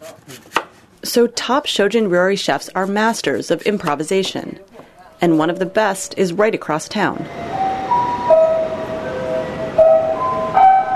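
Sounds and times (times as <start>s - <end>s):
speech: 1.1s - 7.6s
traditional daily chimes in Tokyo: 7.3s - 10.9s.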